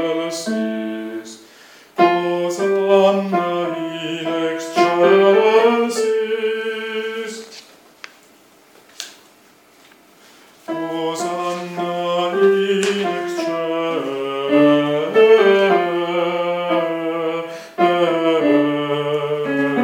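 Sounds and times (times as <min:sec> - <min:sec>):
contralto voices singing a sanctus: 0:02.0 - 0:07.6, 0:10.7 - 0:19.8.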